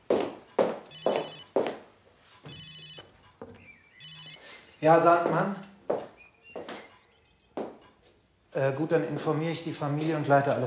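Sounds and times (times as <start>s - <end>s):
mobile phone ringing: 0.8s - 1.7s, 2.4s - 4.9s
speech: 4.8s - 5.7s, 8.6s - 10.6s.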